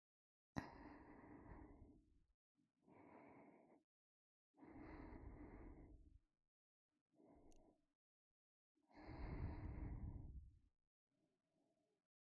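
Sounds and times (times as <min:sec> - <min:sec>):
ASMR breathing in the right ear: 0:00.6 - 0:02.1, 0:02.8 - 0:03.8, 0:04.6 - 0:06.2, 0:08.9 - 0:10.4.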